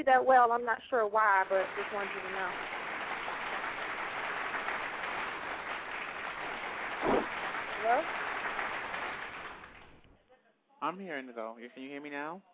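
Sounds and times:
speech: 0.0s - 2.8s, 7.8s - 8.3s, 10.8s - 12.5s
round of applause: 1.3s - 10.0s
brief vocal sounds: 7.0s - 7.3s.

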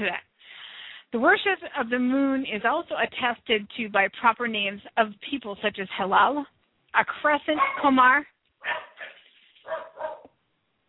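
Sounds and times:
speech: 0.0s - 0.3s, 1.1s - 9.1s
household dogs barking: 7.6s - 7.9s, 8.6s - 10.4s.

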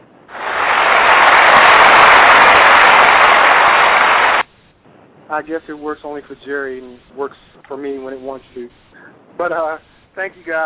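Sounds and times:
applause sound effect from button: 0.3s - 4.5s
speech: 5.4s - 10.6s.

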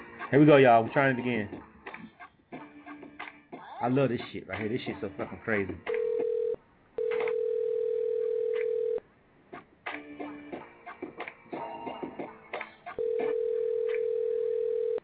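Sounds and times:
speech: 0.3s - 1.6s, 3.8s - 5.9s
phone ringback tone on an outgoing call: 5.9s - 9.0s, 13.0s - 15.0s.

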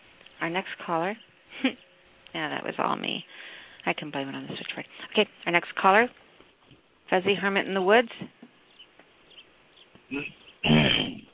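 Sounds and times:
speech: 0.5s - 6.2s, 7.1s - 8.4s, 10.1s - 11.2s
person clearing throat over a phone line: 10.1s - 11.3s.

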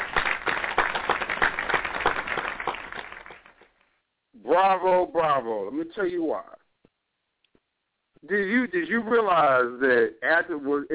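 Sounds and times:
applause sound effect: 0.0s - 3.8s
speech: 4.6s - 6.6s, 8.2s - 10.9s.

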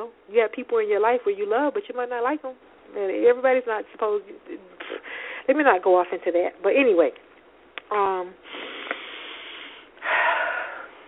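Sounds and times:
speech: 0.0s - 4.8s, 5.5s - 7.2s, 7.9s - 8.6s
deep breath: 5.0s - 5.4s, 8.4s - 11.0s.

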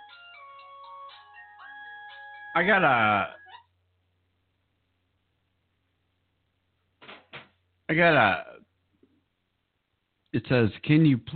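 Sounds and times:
phone ringtone: 0.0s - 3.6s
speech: 2.6s - 3.4s, 7.9s - 8.5s, 10.3s - 11.3s.

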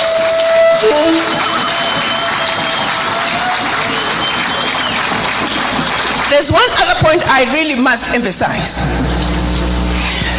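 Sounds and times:
audience round of applause: 0.0s - 7.8s
crowd noise: 0.0s - 10.2s
speech: 7.3s - 9.1s.

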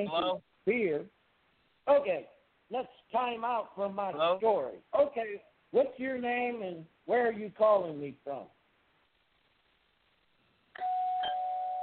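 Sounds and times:
speech: 0.0s - 1.2s, 1.8s - 8.6s
doorbell ringing: 10.8s - 11.8s.

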